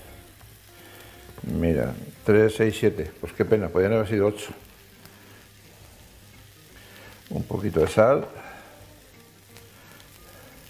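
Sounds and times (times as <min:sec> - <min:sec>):
meat browning in a pan with oil: 0:00.0 - 0:10.6
speech: 0:01.4 - 0:04.6, 0:07.6 - 0:08.4.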